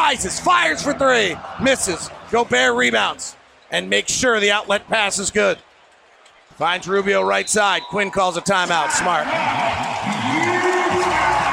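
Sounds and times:
arena crowd cheering: 0:00.0 - 0:11.5
speech: 0:00.1 - 0:05.7, 0:06.6 - 0:09.9.

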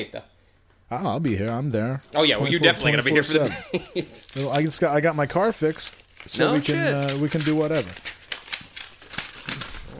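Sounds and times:
speech: 0:00.0 - 0:00.3, 0:00.9 - 0:08.2
laughter: 0:02.7 - 0:04.5
mail envelope being torn open: 0:04.1 - 0:09.9.

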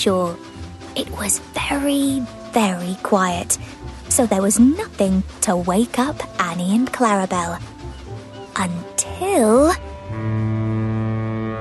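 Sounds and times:
speech: 0:00.0 - 0:07.7, 0:08.6 - 0:09.8
lighthouse foghorn: 0:09.6 - 0:11.5.

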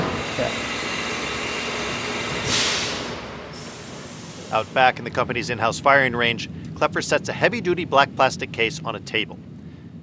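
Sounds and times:
CNC machine whittling a gun stock: 0:00.0 - 0:05.0
small hoses spraying coolant: 0:00.2 - 0:05.1
speech: 0:00.4 - 0:00.7, 0:04.5 - 0:09.5.

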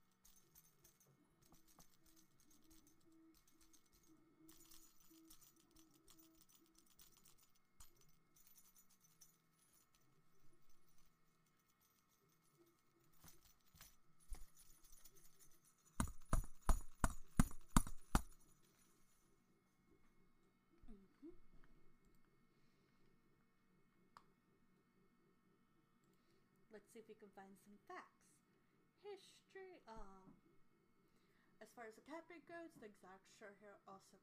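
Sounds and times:
bells jingling: 0:00.0 - 0:19.2
speech: 0:26.8 - 0:28.4, 0:29.0 - 0:30.5, 0:31.6 - 0:34.2.

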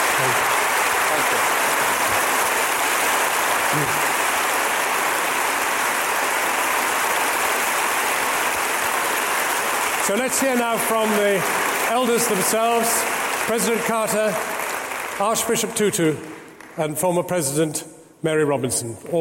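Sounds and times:
audience applause for a stage introduction: 0:00.0 - 0:16.8
speech: 0:10.1 - 0:14.6, 0:15.2 - 0:19.1.

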